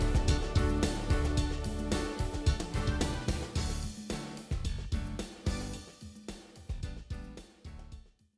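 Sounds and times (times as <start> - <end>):
groovy rock style synth music with rousing intro: 0.0 - 6.3.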